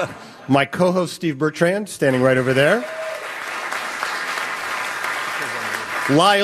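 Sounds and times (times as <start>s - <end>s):
speech: 0.0s - 3.0s, 6.1s - 6.4s
outdoor Walk of Fame ceremony audience applause: 2.2s - 6.4s.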